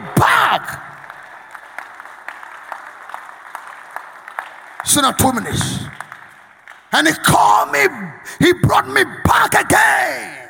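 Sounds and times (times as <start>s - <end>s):
audience clapping hands in a steady rhythm: 0.0s - 8.0s
speech: 0.5s - 0.9s, 4.9s - 6.0s, 6.9s - 10.4s.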